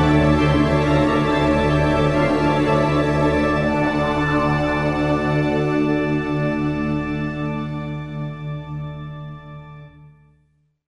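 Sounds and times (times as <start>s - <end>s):
strings: 0.0s - 8.0s.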